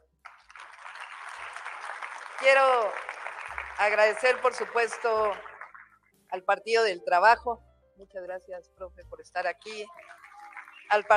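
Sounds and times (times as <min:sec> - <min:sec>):
applause: 0:00.0 - 0:06.0, 0:09.7 - 0:11.1
speech: 0:02.4 - 0:03.1, 0:03.8 - 0:05.5, 0:06.3 - 0:10.1, 0:10.9 - 0:11.1.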